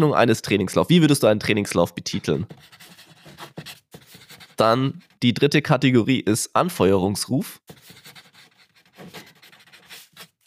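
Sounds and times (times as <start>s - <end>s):
speech: 0.0s - 2.9s, 4.6s - 8.0s
pen scratching across paper: 2.2s - 5.2s, 7.7s - 10.4s.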